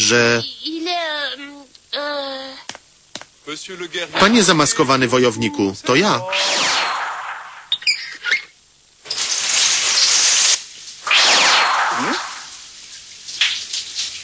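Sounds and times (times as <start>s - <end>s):
speech: 0.1s - 2.2s, 3.5s - 6.6s
shower running: 9.0s - 14.2s.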